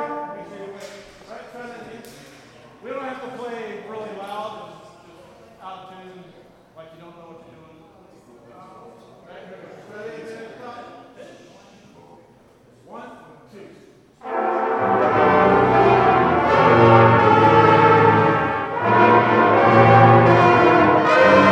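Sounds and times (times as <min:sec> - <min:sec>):
brass melody: 0:00.0 - 0:01.0, 0:14.2 - 0:21.5.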